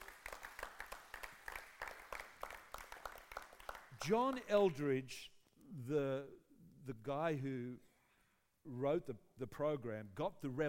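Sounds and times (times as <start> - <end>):
audience clapping hands: 0.0 - 4.7
speech: 4.0 - 7.9, 8.6 - 10.6.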